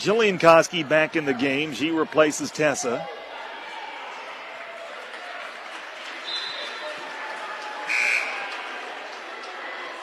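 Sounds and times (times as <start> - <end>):
speech: 0.0 - 3.2
crowd applauding at basketball game: 4.4 - 10.0
short high whistle blast: 6.2 - 6.8, 7.9 - 8.4.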